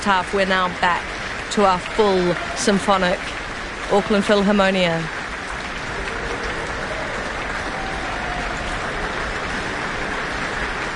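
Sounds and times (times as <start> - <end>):
speech: 0.0 - 5.2
concert audience applause: 0.5 - 10.9.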